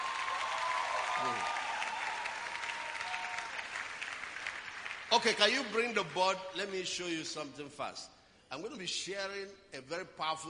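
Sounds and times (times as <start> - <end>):
faint cheer: 0.0 - 4.1
large audience applause: 0.0 - 6.2
speech: 1.2 - 1.6, 5.1 - 10.4.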